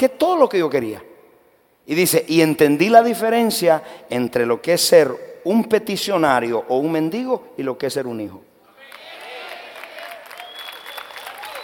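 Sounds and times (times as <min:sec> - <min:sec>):
speech: 0:00.0 - 0:01.1, 0:01.9 - 0:08.5
audience applause: 0:08.9 - 0:11.6.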